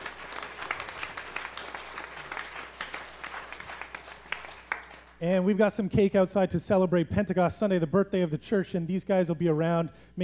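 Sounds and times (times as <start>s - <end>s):
church congregation applauding to welcome new members on Pentecost Sunday: 0.0s - 5.3s
speech: 5.2s - 10.2s.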